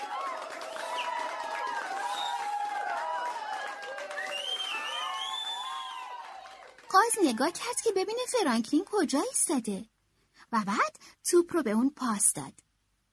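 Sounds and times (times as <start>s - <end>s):
large crowd cheering, shouting and whooping: 0.0s - 8.1s
speech: 6.9s - 9.9s, 10.5s - 12.6s.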